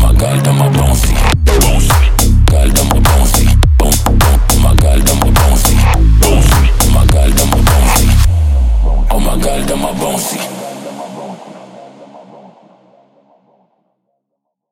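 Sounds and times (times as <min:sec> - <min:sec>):
bouncy bass test: 0:00.0 - 0:10.2.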